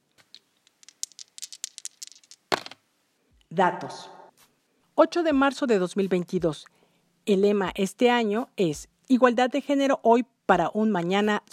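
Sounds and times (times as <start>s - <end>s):
dice rattling and landing: 0.1s - 2.8s
speech: 3.5s - 4.2s, 5.0s - 11.5s.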